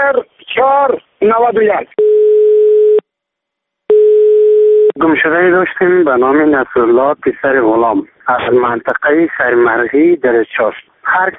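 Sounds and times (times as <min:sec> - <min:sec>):
speech: 0:00.1 - 0:02.1, 0:05.0 - 0:11.3
telephone busy signal after dialing: 0:02.0 - 0:03.0, 0:03.9 - 0:05.0.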